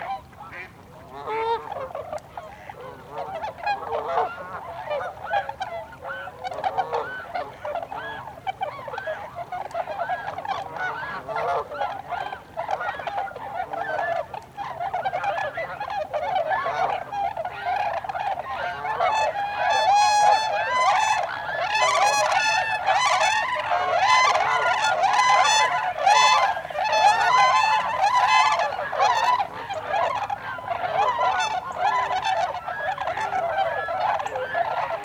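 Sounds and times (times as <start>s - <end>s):
tundra swan flock calling: 0.0s - 35.0s.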